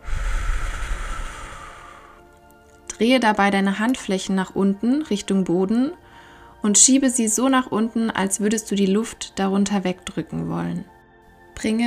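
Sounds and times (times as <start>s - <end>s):
deep breath in and firm exhale during a guided breathing exercise: 0.0s - 2.2s, 6.0s - 6.6s
speech: 3.0s - 6.0s, 6.6s - 11.0s, 11.6s - 11.8s.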